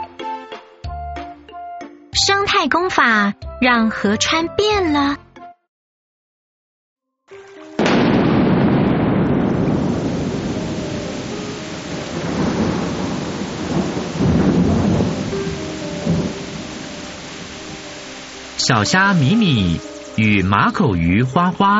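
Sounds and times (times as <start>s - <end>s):
speech: 2.3s - 5.2s, 18.7s - 21.7s
heavy rain: 7.6s - 21.7s
thunder crack: 7.8s - 18.0s
thunder rumbling: 7.8s - 20.8s.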